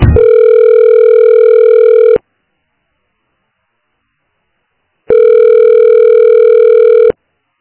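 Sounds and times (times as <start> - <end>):
telephone busy tone on an office reception line: 0.1 - 2.2, 5.1 - 7.2.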